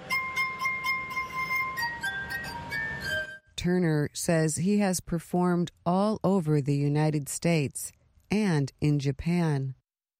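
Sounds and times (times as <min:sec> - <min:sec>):
glass harp melody: 0:00.0 - 0:03.5
speech: 0:03.6 - 0:09.8.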